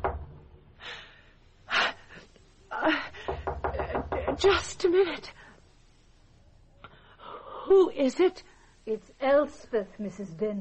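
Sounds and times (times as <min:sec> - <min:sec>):
soft insistent knocking at a door: 0:03.2 - 0:04.6
speech: 0:04.4 - 0:05.4, 0:07.7 - 0:10.5.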